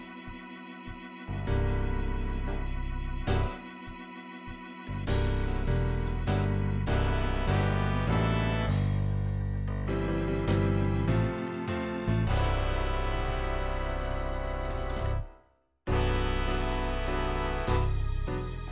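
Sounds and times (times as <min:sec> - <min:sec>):
gospel MIDI music in six-eight time: 0:01.5 - 0:15.2, 0:15.9 - 0:18.7.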